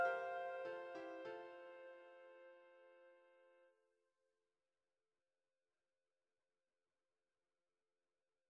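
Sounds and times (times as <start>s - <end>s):
flutes in three voices: 0.0s - 3.4s.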